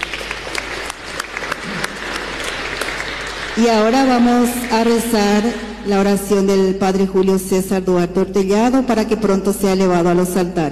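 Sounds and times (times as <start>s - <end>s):
audience applause: 0.0s - 5.5s
speech: 3.6s - 10.6s.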